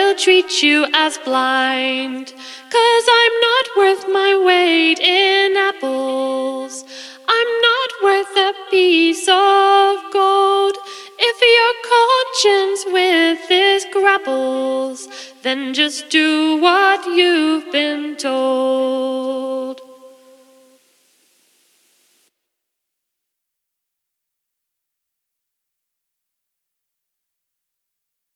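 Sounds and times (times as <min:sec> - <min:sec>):
vocals: 0:00.0 - 0:21.2.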